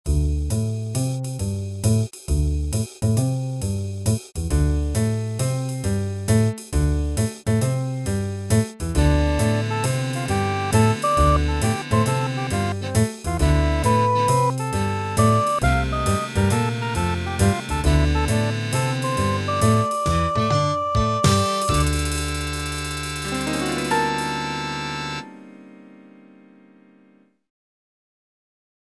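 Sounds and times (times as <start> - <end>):
jazz style score music: 0.1 - 26.4.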